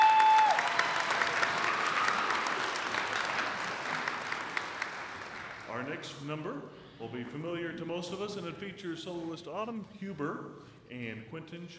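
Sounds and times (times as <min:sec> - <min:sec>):
audience applause: 0:00.0 - 0:05.9
speech: 0:05.9 - 0:11.7.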